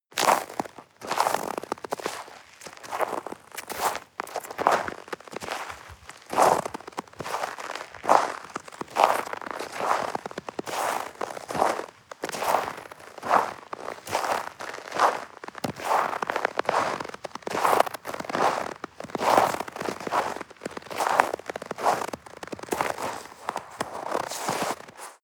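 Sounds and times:
footsteps in snow: 0.2 - 25.2.

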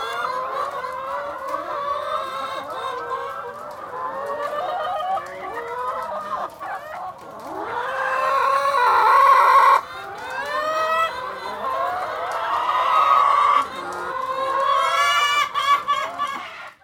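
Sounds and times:
chickens clucking: 0.0 - 16.8.

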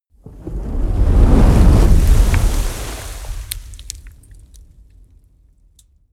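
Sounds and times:
large fire crackling: 0.1 - 5.1
fireball whoosh: 0.2 - 4.0.

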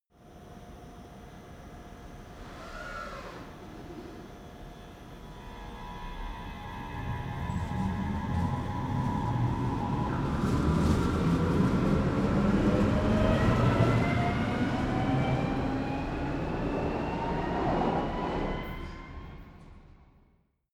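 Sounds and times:
train departing underground station: 2.2 - 19.8.

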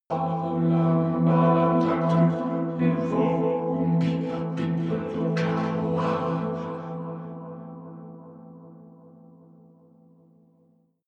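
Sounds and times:
vocoder vocals: 0.0 - 9.1.

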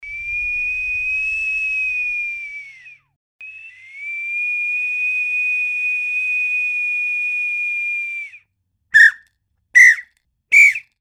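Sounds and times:
whistle: 0.0 - 9.2, 9.8 - 10.9.

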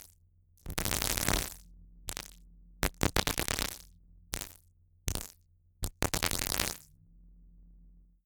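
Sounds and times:
science fiction crackle sequence: 0.7 - 6.9.

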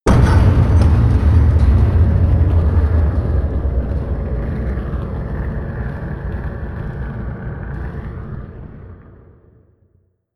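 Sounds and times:
flames burning: 0.6 - 8.8.

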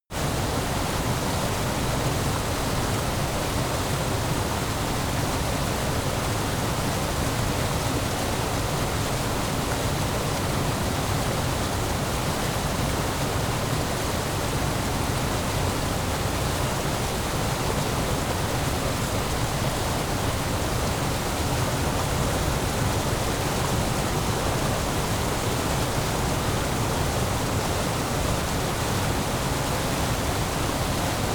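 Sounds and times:
stream flowing: 0.2 - 31.3.

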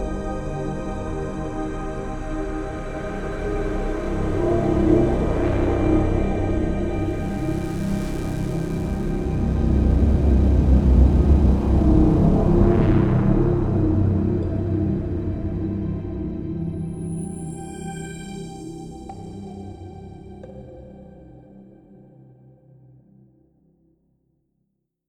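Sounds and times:
drone strings: 0.0 - 20.1.

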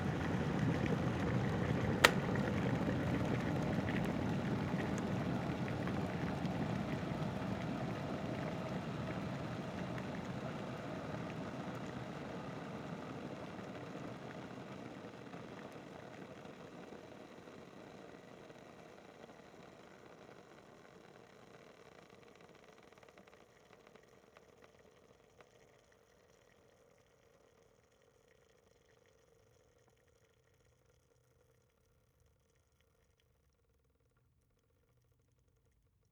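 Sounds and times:
water boiler boiling: 0.0 - 13.4.

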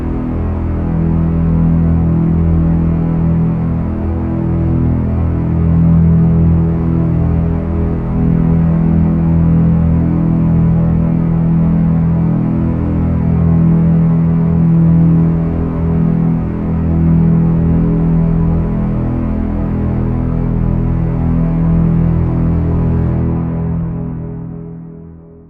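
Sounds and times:
simple double bass drone: 0.0 - 25.4.

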